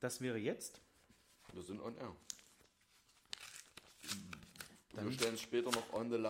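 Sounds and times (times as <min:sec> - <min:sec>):
speech: 0:00.0 - 0:00.9, 0:01.5 - 0:02.4, 0:05.0 - 0:06.2
paper envelope being torn open live on air: 0:03.2 - 0:06.2.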